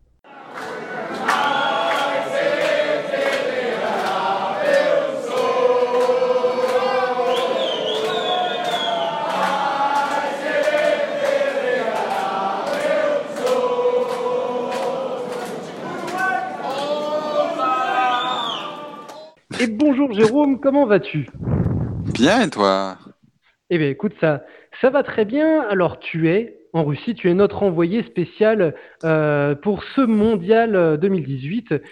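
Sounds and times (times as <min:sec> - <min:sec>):
Uruguayan football fans chanting: 0:00.2 - 0:19.4
speech: 0:20.1 - 0:21.5, 0:22.1 - 0:23.1, 0:23.7 - 0:31.9.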